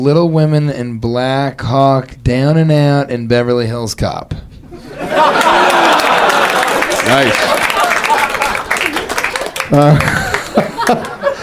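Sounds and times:
speech: 0.0 - 6.1, 7.0 - 7.5, 9.7 - 10.2, 10.9 - 11.2
scattered laughter: 4.7 - 11.4
crowd clapping and cheering: 5.0 - 11.4.

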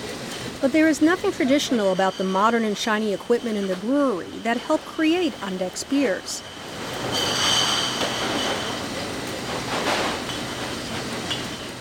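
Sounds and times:
recycled glass bottles moving on brewery conveyor belt: 0.0 - 11.7
speech: 0.6 - 7.3.

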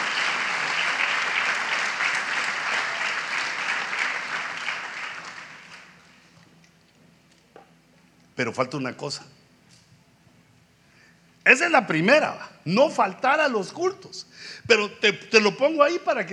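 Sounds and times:
audience applause: 0.0 - 6.1
speech: 8.4 - 9.4, 11.5 - 16.3.

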